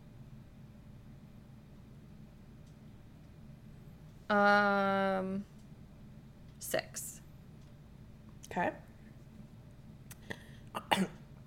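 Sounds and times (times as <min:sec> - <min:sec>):
speech: 0:04.3 - 0:05.5, 0:06.7 - 0:07.1, 0:08.6 - 0:08.8, 0:11.0 - 0:11.2
person coughing and choking on their own saliva: 0:10.8 - 0:11.2.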